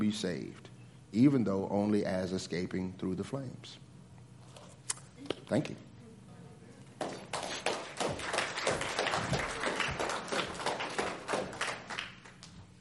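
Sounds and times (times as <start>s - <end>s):
speech: 0.0s - 3.8s, 5.5s - 5.9s
audience applause: 7.0s - 12.4s.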